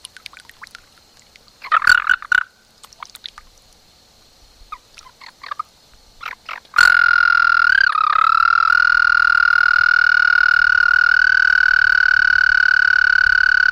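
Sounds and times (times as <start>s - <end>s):
American toad Anaxyrus americanus trilling: 1.6s - 3.0s, 4.7s - 13.7s.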